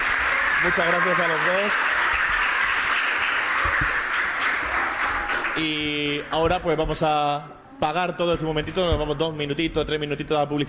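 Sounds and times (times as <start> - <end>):
applause: 0.0 - 5.8
speech: 0.6 - 1.9, 5.6 - 10.6.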